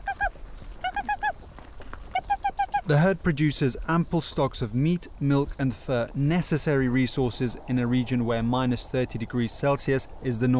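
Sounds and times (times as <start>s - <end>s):
herder's nasal honk-like call to feed reindeer: 0.0s - 1.4s, 2.1s - 3.0s
speech: 2.9s - 10.5s.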